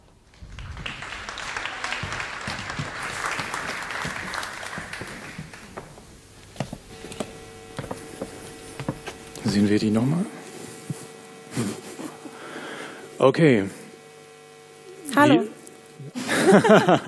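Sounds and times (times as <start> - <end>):
applause: 0.2 - 5.8
speech: 9.5 - 10.4, 13.2 - 13.8, 15.2 - 15.5, 16.5 - 17.0
laughter: 11.5 - 12.6, 16.1 - 17.0.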